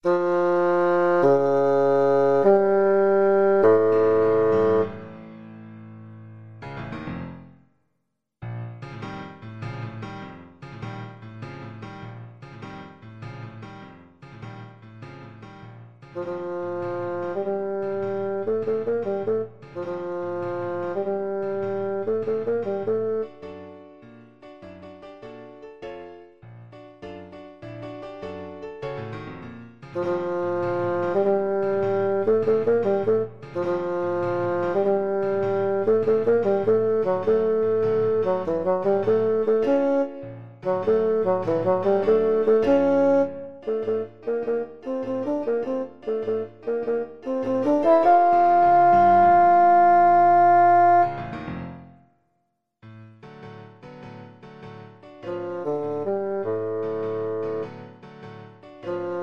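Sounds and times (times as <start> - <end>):
bassoon: 0.0 - 5.3, 16.1 - 23.5, 29.9 - 52.0, 55.2 - 57.9, 58.8 - 59.2.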